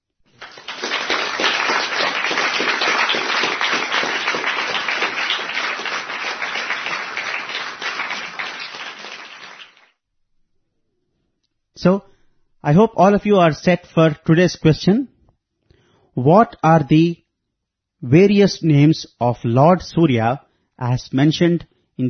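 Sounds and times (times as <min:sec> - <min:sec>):
audience applause: 0:00.3 - 0:09.9
speech: 0:11.8 - 0:15.1, 0:16.2 - 0:17.2, 0:18.0 - 0:22.0.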